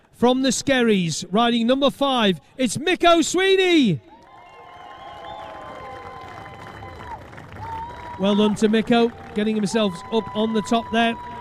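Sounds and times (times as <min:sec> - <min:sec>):
speech: 0:00.2 - 0:04.1, 0:08.2 - 0:11.3
crowd applause: 0:04.2 - 0:11.3.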